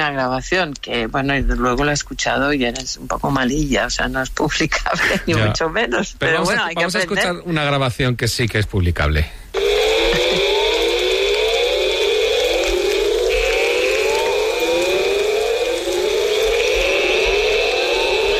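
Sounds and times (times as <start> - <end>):
speech: 0.1 - 9.6
high-pitched insect drone in Tikal rainforest: 9.5 - 18.3
siren-like calls in Tikal rainforest at nightfall: 9.5 - 18.3.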